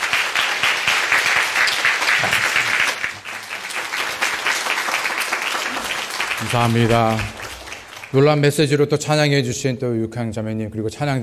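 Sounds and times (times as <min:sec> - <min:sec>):
audience applause: 0:00.0 - 0:08.6
speech: 0:06.5 - 0:07.4, 0:08.1 - 0:11.2.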